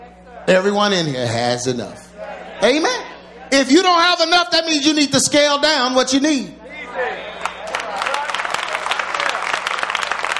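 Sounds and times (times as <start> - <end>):
speech: 0.4 - 7.2
audience hand claps: 7.4 - 10.3.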